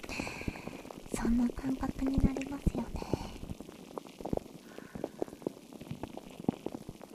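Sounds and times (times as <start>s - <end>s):
carbonated water fizzing: 0.0s - 7.1s
speech: 1.2s - 3.2s.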